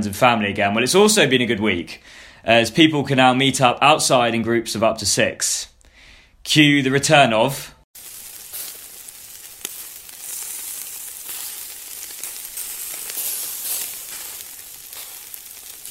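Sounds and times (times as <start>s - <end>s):
speech: 0.0s - 5.7s, 6.4s - 7.8s
food sizzling on a barbecue in hot weather: 8.0s - 15.8s.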